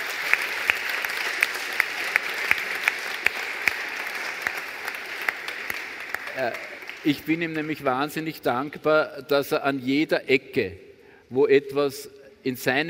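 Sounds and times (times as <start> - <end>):
audience applause: 0.0 - 7.9
speech: 6.4 - 12.8.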